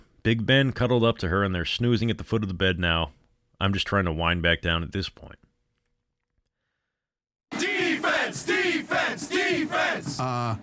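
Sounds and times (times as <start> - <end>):
speech: 0.2 - 5.5, 8.3 - 10.6
football crowd chanting: 7.5 - 10.6.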